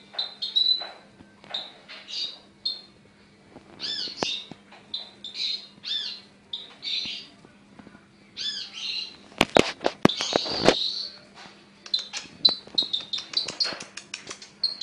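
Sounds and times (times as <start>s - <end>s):
Oriental magpie-robin singing: 0.1s - 3.0s, 3.8s - 7.4s, 8.4s - 9.2s, 10.1s - 11.2s, 11.8s - 13.8s, 14.6s - 14.8s.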